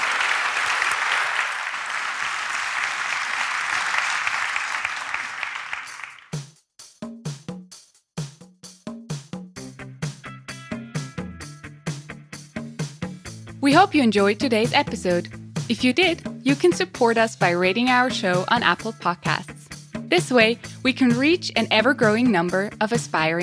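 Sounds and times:
audience applause: 0:00.0 - 0:06.3
rhythmic music with sharp regular percussive beats: 0:01.7 - 0:23.4
speech: 0:13.6 - 0:19.5, 0:20.1 - 0:23.4.

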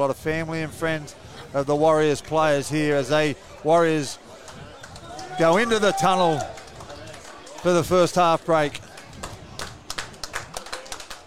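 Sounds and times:
speech: 0:00.0 - 0:04.2, 0:05.4 - 0:06.6, 0:07.6 - 0:08.9
faint crowd murmur: 0:00.0 - 0:11.2
crowd clapping at stadium: 0:04.3 - 0:11.2.

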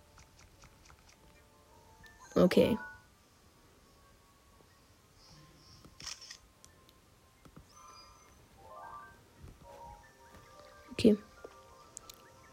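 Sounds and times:
soft ambient tones and chirps at a fairy fountain in a video game: 0:00.0 - 0:12.5
speech: 0:02.4 - 0:02.9, 0:11.0 - 0:11.3
camera shutter in a Zelda video game: 0:06.0 - 0:06.4.

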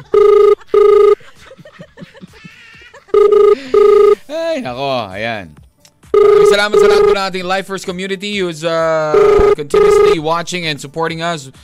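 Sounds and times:
telephone ringing while placing a call to a doctor: 0:00.0 - 0:01.2, 0:03.1 - 0:04.2, 0:06.1 - 0:07.8, 0:09.2 - 0:10.8
laughter: 0:00.6 - 0:03.8
speech: 0:04.6 - 0:05.6, 0:06.2 - 0:11.6.

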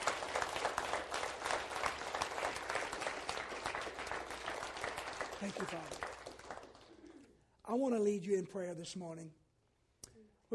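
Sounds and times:
audience hand clapping: 0:00.0 - 0:07.4
speech: 0:05.4 - 0:06.1, 0:07.7 - 0:09.4.

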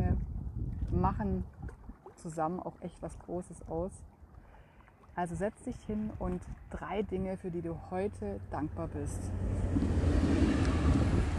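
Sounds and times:
speech: 0:01.0 - 0:01.6, 0:02.2 - 0:04.1, 0:05.2 - 0:10.0
train passing by: 0:08.8 - 0:11.3.

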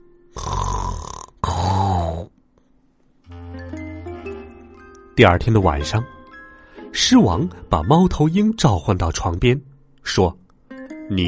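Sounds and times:
loud snoring: 0:00.4 - 0:02.3
speech: 0:05.2 - 0:06.2, 0:07.0 - 0:10.4, 0:11.1 - 0:11.2.

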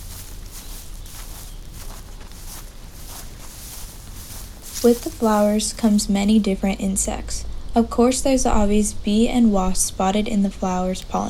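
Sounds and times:
footsteps crunching through dry, brittle vegetation: 0:00.0 - 0:06.5
low hiss: 0:00.0 - 0:11.2
speech: 0:04.8 - 0:11.2.

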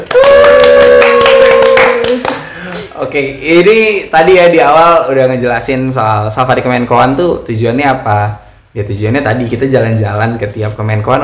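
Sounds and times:
group clapping hands: 0:00.0 - 0:03.0
speech: 0:03.1 - 0:11.2.

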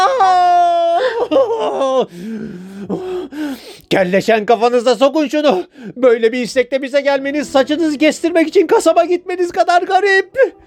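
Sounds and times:
man crying out in pain: 0:00.0 - 0:03.5
speech: 0:01.3 - 0:02.6, 0:03.9 - 0:10.6.

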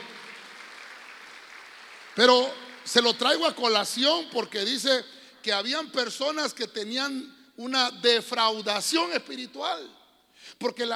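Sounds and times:
audience clapping: 0:00.0 - 0:04.0
speech: 0:02.2 - 0:10.9.

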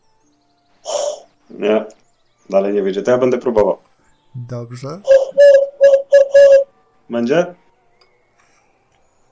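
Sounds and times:
speech: 0:01.6 - 0:05.6, 0:07.1 - 0:07.6
person whistling an imitation of an owl call: 0:05.0 - 0:06.7.

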